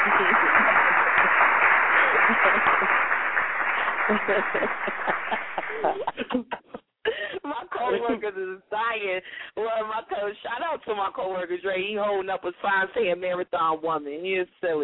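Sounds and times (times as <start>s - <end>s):
applause: 0.0s - 6.3s
laughter: 0.0s - 8.4s
speech: 4.1s - 6.8s, 7.5s - 14.8s.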